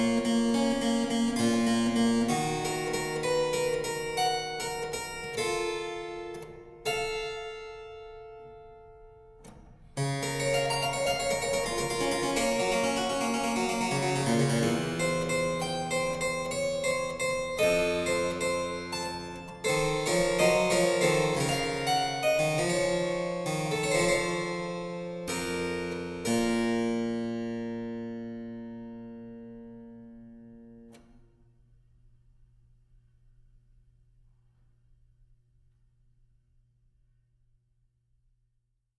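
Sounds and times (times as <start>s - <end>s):
harpsichord: 0.0s - 30.3s.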